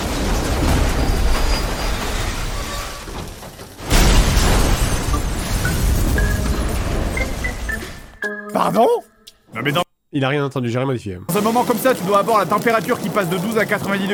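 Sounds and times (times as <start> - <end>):
truck exploding against police station gates: 0.0 - 8.2
speech: 8.6 - 14.1.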